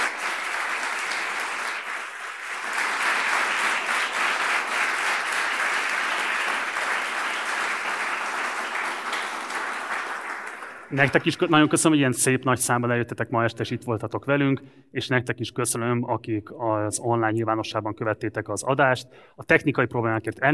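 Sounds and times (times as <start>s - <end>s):
audience applause: 0.0s - 11.8s
speech: 10.9s - 20.5s.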